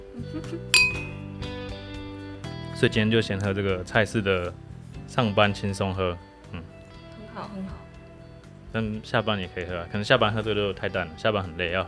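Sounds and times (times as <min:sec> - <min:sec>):
speech: 0:00.2 - 0:00.8, 0:02.8 - 0:06.7, 0:07.4 - 0:07.9, 0:08.7 - 0:11.8
glasses clinking in a toast: 0:00.8 - 0:01.3.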